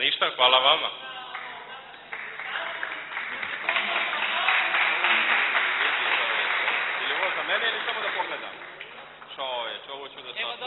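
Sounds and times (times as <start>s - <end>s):
speech: 0.2s - 1.1s, 9.4s - 10.6s
applause at the end of a religious lesson class: 1.3s - 9.5s.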